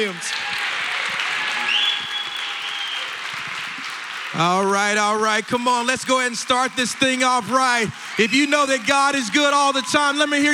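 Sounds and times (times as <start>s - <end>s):
speech: 0.0s - 0.4s, 4.3s - 10.5s
church congregation applauding: 0.0s - 10.5s.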